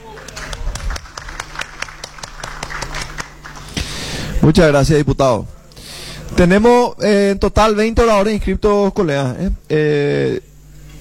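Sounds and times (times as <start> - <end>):
applause in parliament chamber: 0.0 - 3.9
speech: 4.4 - 5.6, 6.4 - 10.5.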